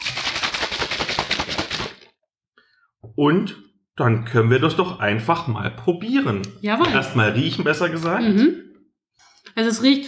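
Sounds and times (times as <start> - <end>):
shaker bottle with water being shaken: 0.0 - 2.2
speech: 3.2 - 8.7, 9.6 - 10.0.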